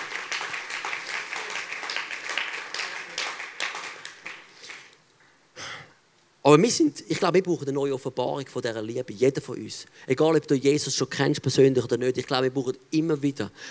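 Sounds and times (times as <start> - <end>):
audience applause: 0.0 - 5.0
speech: 6.5 - 13.6.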